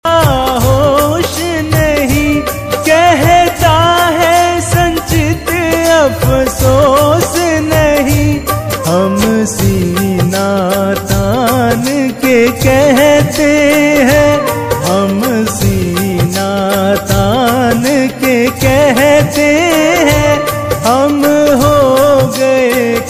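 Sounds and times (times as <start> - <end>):
Hindu devotional bhajan song: 0.0 - 23.0.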